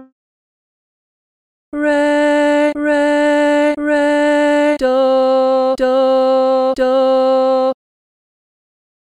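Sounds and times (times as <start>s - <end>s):
person singing solfa training exercise: 1.7s - 7.8s.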